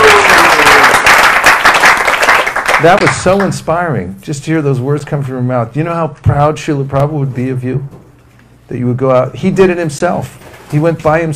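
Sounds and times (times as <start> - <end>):
audience applause at a devotional gathering: 0.0 - 3.5
speech: 2.8 - 8.0, 8.7 - 11.3.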